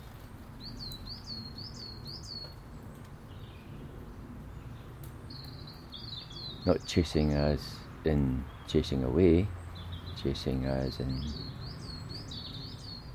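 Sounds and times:
sparrows chirping: 0.0s - 13.1s
speech: 6.6s - 9.6s, 10.2s - 11.6s.

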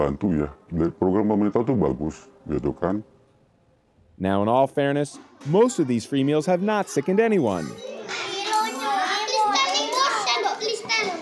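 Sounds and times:
speech: 0.0s - 3.1s, 4.2s - 8.2s
group of young children chattering over lunch: 5.2s - 11.1s.

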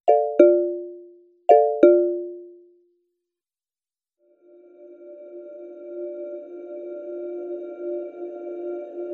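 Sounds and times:
paulstretched marimba: 0.1s - 2.6s.

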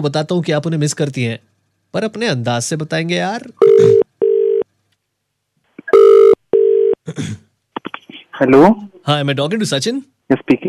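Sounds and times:
speech: 0.0s - 4.0s, 7.1s - 7.4s, 8.4s - 10.6s
telephone ringback tone of an outgoing call: 3.6s - 4.6s, 5.9s - 7.0s.

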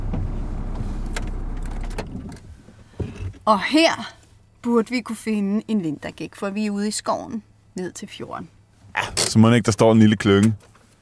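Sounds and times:
car engine idling and being switched off: 0.0s - 3.0s
speech: 3.5s - 10.7s.

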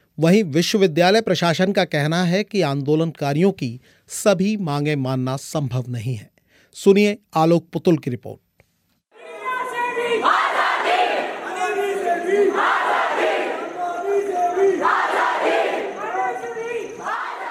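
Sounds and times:
speech: 0.2s - 8.4s
crowd of students chanting slogans in unison: 9.2s - 17.4s.

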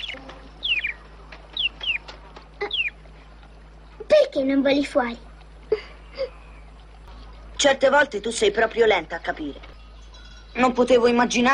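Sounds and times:
small bird chirping: 0.0s - 3.0s, 5.6s - 7.5s
speech: 4.4s - 5.3s, 7.6s - 9.7s, 10.6s - 11.5s.

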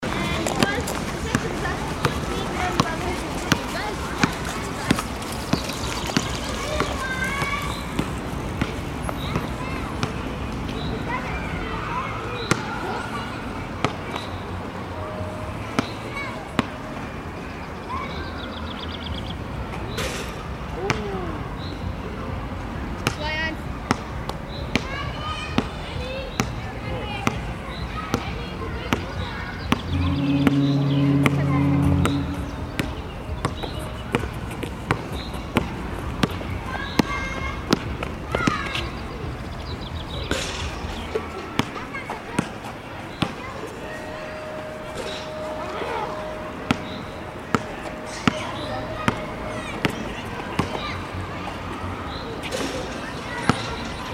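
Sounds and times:
people playing basketball near a funfair: 0.0s - 14.3s, 23.0s - 39.0s, 40.4s - 43.8s, 46.7s - 54.1s
funfair: 0.0s - 54.1s.

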